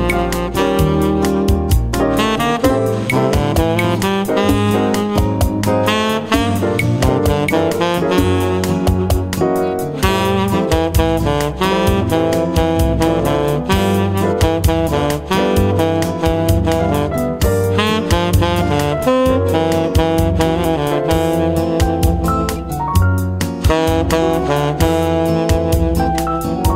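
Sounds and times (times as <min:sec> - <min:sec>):
Latino saxophone melody: 0:00.0 - 0:26.7.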